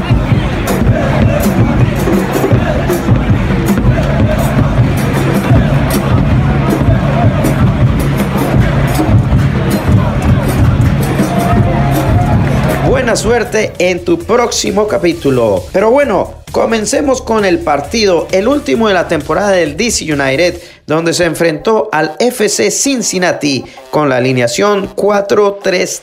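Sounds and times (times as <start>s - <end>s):
stadium fans chanting from the stands: 0.0s - 13.5s
speech: 13.1s - 26.0s.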